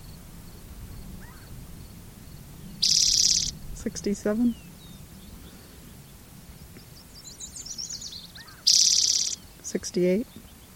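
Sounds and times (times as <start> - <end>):
faint high chirps: 2.8 - 3.6, 6.6 - 10.7
speech: 3.8 - 4.7, 9.8 - 10.5.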